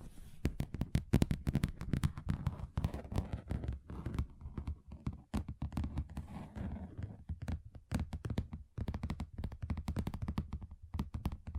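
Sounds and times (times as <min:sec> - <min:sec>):
fingers tapping and knocking on a table: 0:00.5 - 0:11.5.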